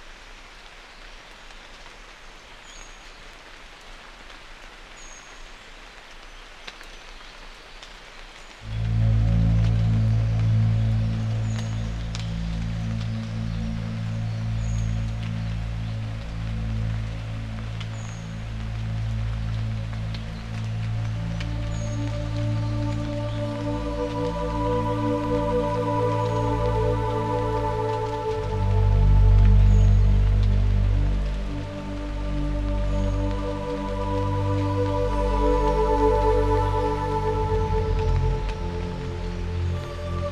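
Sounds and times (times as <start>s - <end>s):
morning rain: 0.0s - 40.3s
music: 8.6s - 40.3s.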